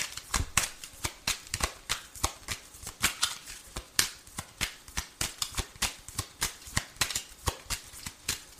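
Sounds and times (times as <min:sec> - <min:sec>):
playing cards being handed over: 0:00.0 - 0:08.5.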